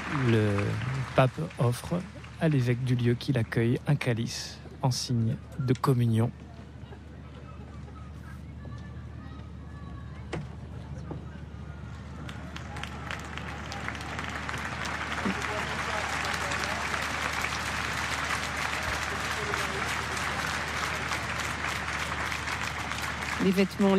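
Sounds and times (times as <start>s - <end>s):
large crowd applauding and cheering at an outdoor papal Mass: 0.0s - 3.2s, 11.8s - 23.9s
speech: 0.1s - 6.5s, 23.6s - 23.9s.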